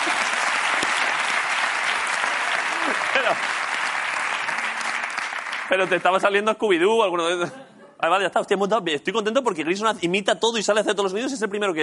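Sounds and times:
audience applause: 0.0 - 6.4
speech: 3.1 - 3.6, 5.7 - 11.8.

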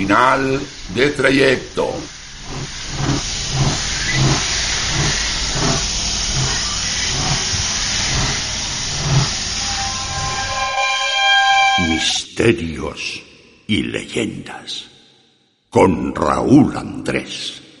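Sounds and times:
speech: 0.0 - 3.7, 12.0 - 14.9, 15.7 - 17.6
train arriving at a station platform: 0.0 - 12.2
train whistle: 9.1 - 12.2.

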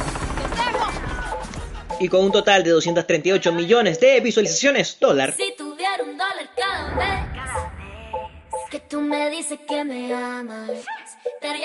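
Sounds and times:
helicopter arriving with rotor beating and turbine whining: 0.0 - 1.6
speech: 2.0 - 7.6, 8.7 - 11.6.

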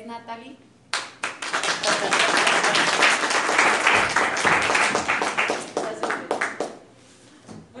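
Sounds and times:
speech: 0.1 - 0.7
audience applause: 1.0 - 6.8
laughter: 1.7 - 3.3.

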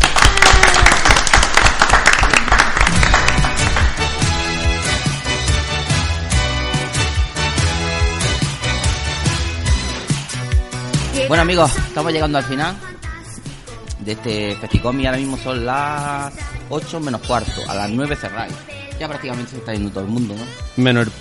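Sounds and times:
audience applause: 0.0 - 4.7
rhythmic music with a regular beat: 2.8 - 21.1
speech: 11.3 - 12.9, 14.0 - 21.1.

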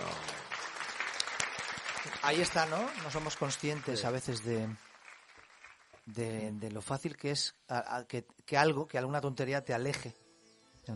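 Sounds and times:
small group applause: 0.0 - 6.3
speech: 2.2 - 4.9, 6.1 - 10.2.

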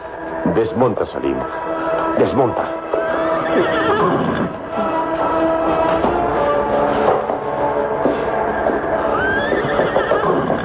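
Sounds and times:
speech: 0.5 - 2.8, 3.5 - 4.8
horse hooves clattering and stamping: 2.0 - 10.6
exhausted horses whinnying: 3.0 - 5.0, 8.6 - 10.6.

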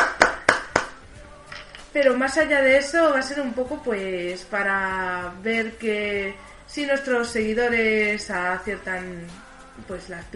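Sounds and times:
hand claps: 0.0 - 1.1
speech: 2.0 - 10.3.

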